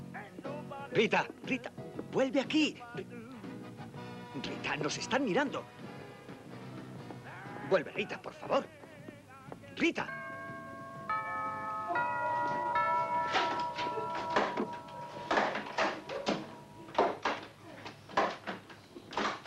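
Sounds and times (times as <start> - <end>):
speech: 0.9 - 3.2, 4.4 - 5.9, 7.7 - 8.8, 9.8 - 10.2
ringing chime tones: 10.0 - 17.7.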